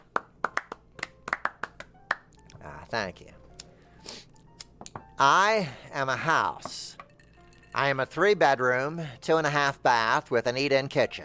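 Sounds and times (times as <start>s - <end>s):
sparse hand claps from a small poetry-reading audience: 0.0s - 2.3s
speech: 2.9s - 3.4s, 5.2s - 7.0s, 7.7s - 11.2s.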